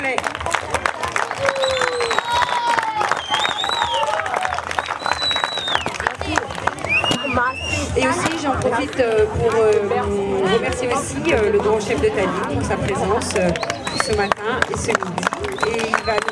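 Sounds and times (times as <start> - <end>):
crowd applause at school event: 0.0 - 7.9, 12.9 - 16.2
cheers and whistles: 1.0 - 7.9, 13.5 - 14.3, 15.3 - 16.2
speech: 8.7 - 16.2.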